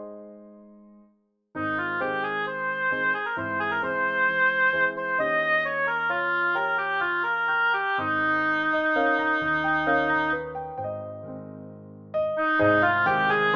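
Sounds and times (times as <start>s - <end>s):
oboe piece: 1.6s - 11.1s, 12.2s - 13.5s.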